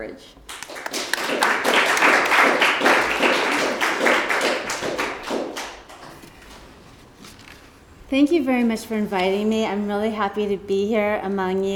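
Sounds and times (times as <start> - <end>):
speech: 0.0 - 0.4, 8.1 - 11.7
audience applause welcoming a speaker to a presentation on women's suffrage: 0.5 - 6.1.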